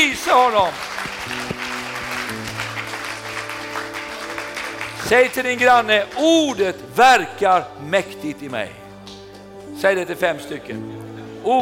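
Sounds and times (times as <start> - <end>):
speech: 0.0 - 1.4, 5.1 - 8.8, 9.8 - 11.6
audience applause: 0.0 - 6.7
low sustained keyboard chords: 0.0 - 11.6.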